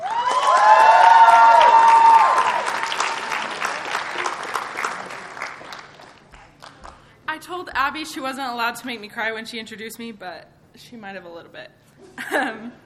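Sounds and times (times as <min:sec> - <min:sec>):
whoops and cheering at a university event: 0:00.0 - 0:03.5
audience applause at a university event: 0:00.0 - 0:07.1
speech: 0:08.0 - 0:12.8.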